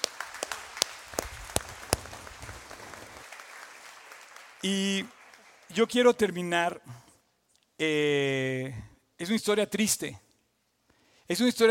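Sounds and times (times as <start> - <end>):
audience applause: 0.0 - 6.0
speech: 4.6 - 7.0, 7.8 - 10.2, 11.3 - 11.6.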